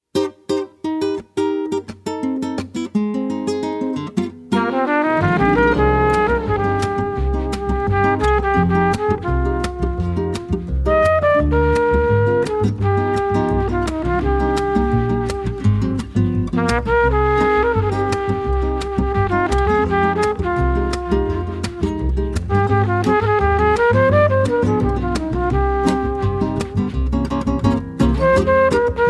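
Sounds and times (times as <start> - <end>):
bossa nova music: 0.2 - 29.0.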